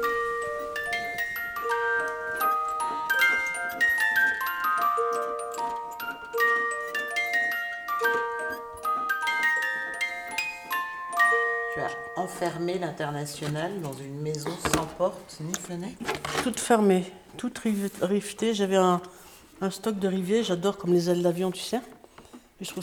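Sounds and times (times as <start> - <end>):
homemade music box playing: 0.0 - 14.1
speech: 12.4 - 21.9, 22.6 - 22.8.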